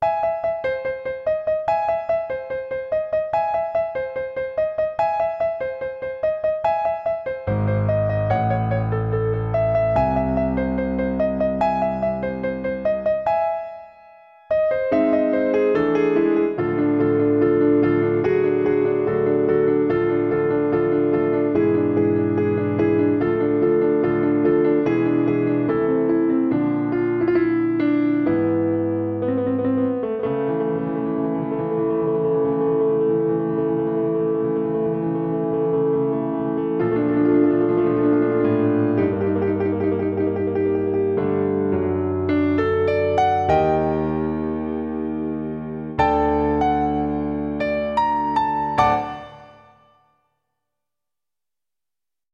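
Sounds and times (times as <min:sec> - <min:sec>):
piano: 0:00.0 - 0:50.5.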